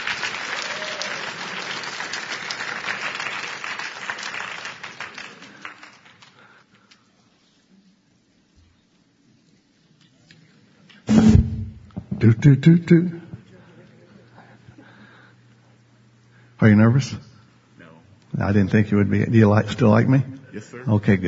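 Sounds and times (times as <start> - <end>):
audience applause welcoming a person onto a stage: 0.0 - 6.6
loud thump: 11.1 - 12.2
speech: 12.2 - 13.2, 16.7 - 17.3, 18.4 - 21.2.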